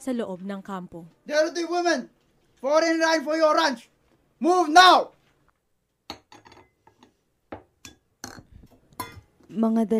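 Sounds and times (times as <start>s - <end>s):
speech: 0.0s - 5.2s, 9.5s - 9.9s
dishes clinking and clattering: 6.1s - 9.5s.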